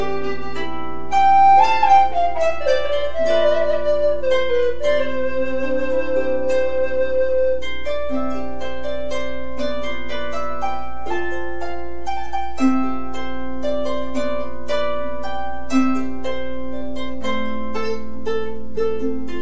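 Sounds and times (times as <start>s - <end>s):
harp: 0.0s - 19.4s.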